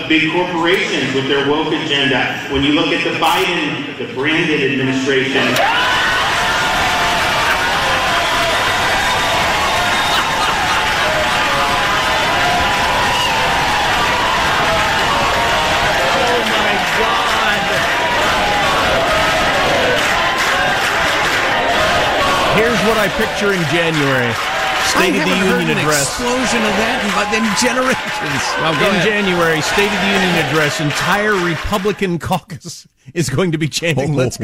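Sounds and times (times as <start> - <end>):
speech: 0.1 - 6.2, 22.9 - 34.4
large crowd cheering: 5.3 - 32.3
laughter: 7.2 - 13.5, 15.8 - 20.8, 21.4 - 32.0.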